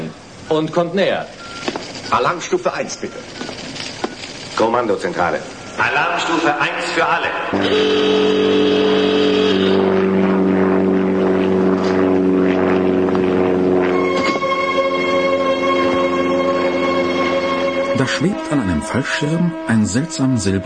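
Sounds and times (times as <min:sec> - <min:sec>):
speech: 0:00.5 - 0:01.4, 0:02.1 - 0:03.4, 0:04.6 - 0:10.0, 0:18.2 - 0:20.6
single aircraft approaching: 0:05.5 - 0:20.6.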